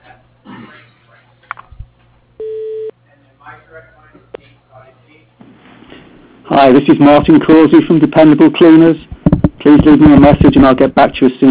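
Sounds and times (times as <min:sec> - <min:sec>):
telephone tone as a call is transferred to voicemail: 0:02.4 - 0:02.9
telephone line noise: 0:06.4 - 0:11.2
speech: 0:06.6 - 0:11.4.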